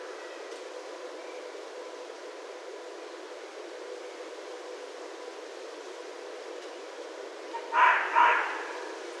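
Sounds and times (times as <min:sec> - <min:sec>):
red fox double bark: 0:07.5 - 0:09.0.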